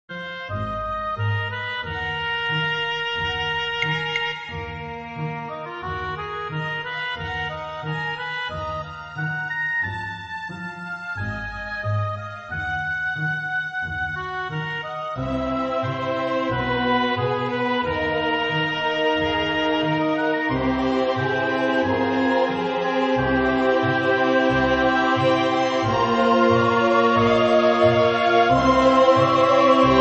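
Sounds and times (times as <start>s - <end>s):
orchestral music: 0.2s - 29.9s.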